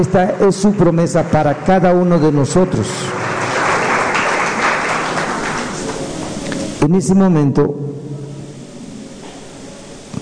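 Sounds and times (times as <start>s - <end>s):
speech: 0.0s - 3.4s, 6.8s - 8.0s
audience applause: 2.6s - 6.8s.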